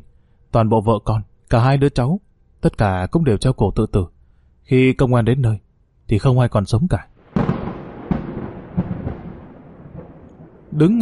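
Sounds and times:
speech: 0:00.5 - 0:04.1, 0:04.7 - 0:07.6, 0:10.8 - 0:11.0
thunderclap: 0:07.2 - 0:11.0.

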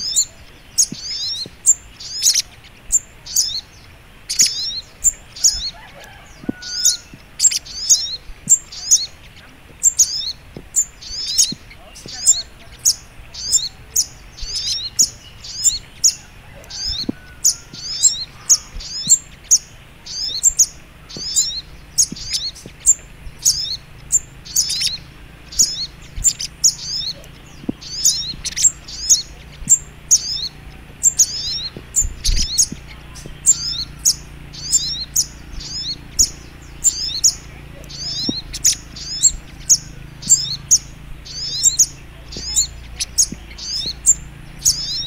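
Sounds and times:
little spiderhunter high chirping: 0:00.0 - 0:45.0.

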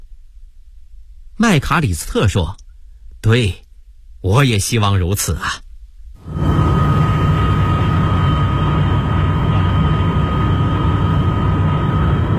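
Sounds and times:
speech: 0:01.4 - 0:02.6, 0:03.2 - 0:03.6, 0:04.2 - 0:05.6
airplane landing at Beijing Capital International Airport: 0:06.2 - 0:12.3.

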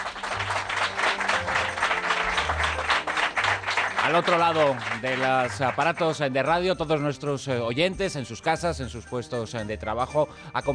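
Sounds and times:
audience applause at a radio station open day: 0:00.0 - 0:06.3
speech: 0:04.1 - 0:10.7.

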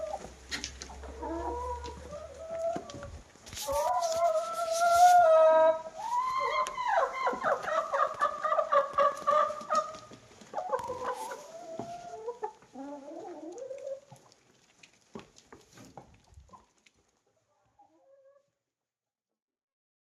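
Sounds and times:
chickens clucking and squawking: 0:00.0 - 0:14.3.

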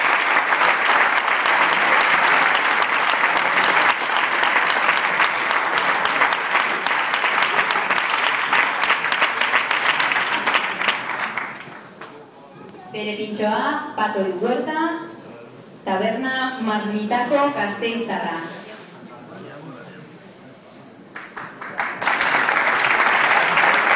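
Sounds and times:
crowd applause: 0:00.0 - 0:12.1, 0:21.2 - 0:23.9
speech: 0:13.0 - 0:15.0, 0:15.9 - 0:18.5.

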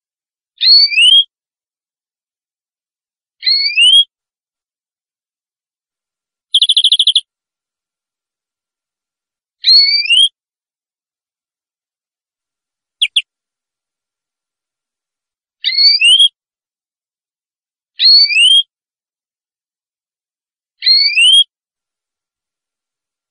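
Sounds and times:
canary whistling: 0:00.6 - 0:01.3, 0:03.4 - 0:04.1, 0:06.5 - 0:07.2, 0:09.6 - 0:10.4, 0:13.0 - 0:13.2, 0:15.6 - 0:16.4, 0:18.0 - 0:18.7, 0:20.8 - 0:21.5.

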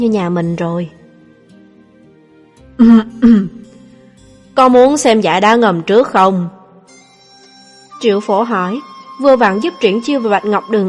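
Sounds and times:
speech: 0:00.0 - 0:01.0, 0:02.8 - 0:03.6, 0:04.6 - 0:06.6, 0:08.0 - 0:10.8
cough: 0:02.8 - 0:03.6.

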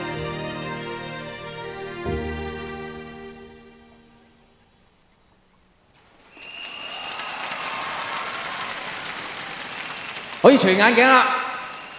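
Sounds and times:
music with bright bell-like tones: 0:02.1 - 0:05.6
concert audience applause in a Hong Kong concert hall: 0:06.3 - 0:11.9
speech: 0:10.5 - 0:11.4.

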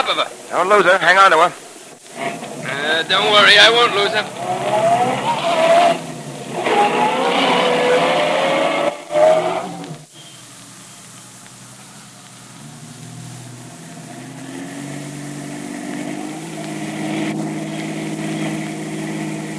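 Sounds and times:
speech: 0:00.1 - 0:01.6, 0:02.2 - 0:06.0
taxi cab engine in heavy traffic pulling up to the curb: 0:01.3 - 0:19.5.

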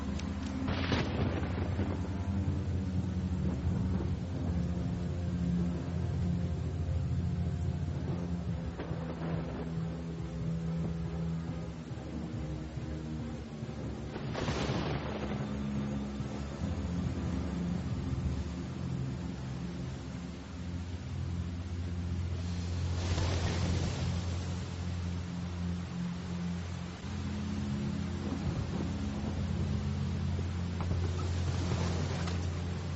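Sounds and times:
rain: 0:00.0 - 0:32.9
thunder: 0:00.6 - 0:02.6, 0:08.0 - 0:10.0, 0:14.1 - 0:15.8.

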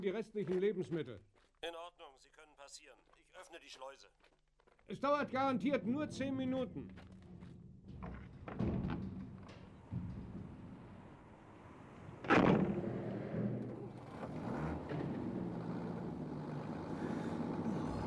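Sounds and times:
speech: 0:00.0 - 0:07.2
heavy delivery vehicle bringing food supplies, engine rumbling: 0:05.8 - 0:18.0
knocks: 0:07.0 - 0:18.0
loud metallic thud: 0:07.8 - 0:14.0.

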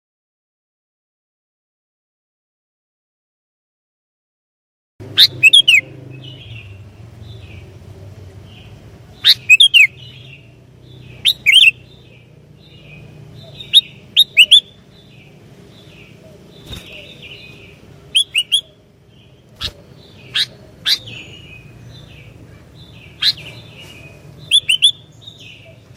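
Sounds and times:
Sooty-headed bulbul song: 0:05.2 - 0:06.8, 0:09.2 - 0:15.1, 0:16.6 - 0:18.8, 0:19.6 - 0:22.2, 0:22.9 - 0:25.8.

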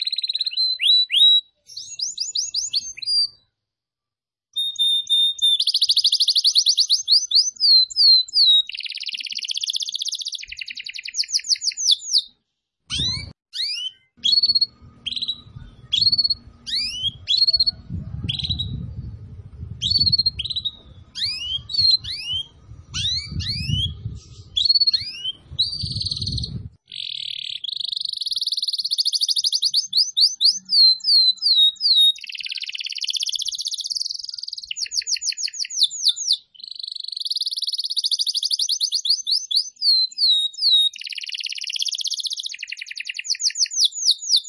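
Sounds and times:
Atlantic canary song: 0:00.0 - 0:03.6, 0:04.5 - 0:44.4
low rumble: 0:14.7 - 0:24.6.

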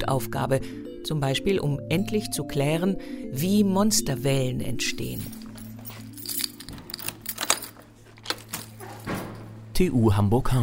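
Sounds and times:
speech: 0:00.0 - 0:05.4, 0:09.8 - 0:10.6
keys unlocking a door: 0:05.0 - 0:09.7.

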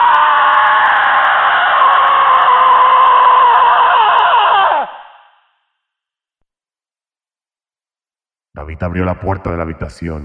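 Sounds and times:
long terrified human scream: 0:00.0 - 0:05.4
speech: 0:08.7 - 0:10.2.

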